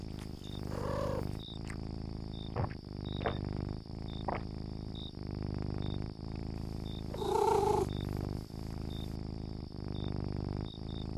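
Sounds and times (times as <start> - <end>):
domestic cat purring: 0.0 - 11.1
domestic cat short harmonic mew: 7.2 - 7.9.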